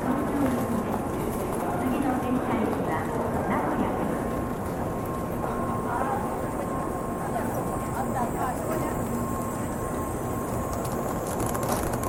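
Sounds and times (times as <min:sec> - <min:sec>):
crowd chatter in a Japanese train station: 0:00.0 - 0:10.6
thin constant tone: 0:04.4 - 0:12.0.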